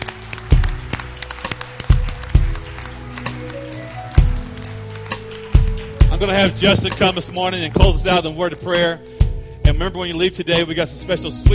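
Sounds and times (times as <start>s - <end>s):
audience clapping: 0.0s - 8.3s
speech: 6.2s - 11.5s.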